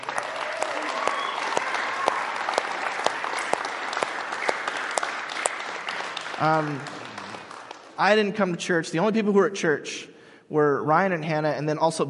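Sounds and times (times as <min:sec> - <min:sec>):
audience applause: 0:00.0 - 0:08.3
speech: 0:06.4 - 0:07.0, 0:08.0 - 0:12.0.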